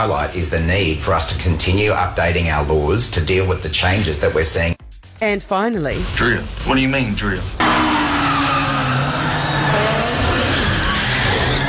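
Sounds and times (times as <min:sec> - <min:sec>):
speech: 0:00.0 - 0:07.6
EV car drifting with tire squeal: 0:07.6 - 0:11.6.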